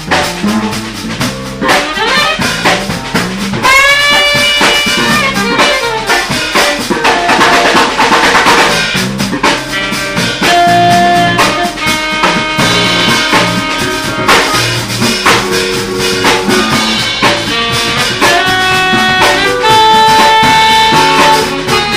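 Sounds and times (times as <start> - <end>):
slap bass on a Fender P Bass: 0.0 - 21.9.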